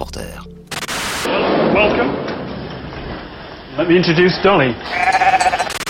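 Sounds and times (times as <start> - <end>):
speech: 0.2 - 2.4, 3.8 - 5.4
frightened small ewe bleating: 4.8 - 5.8.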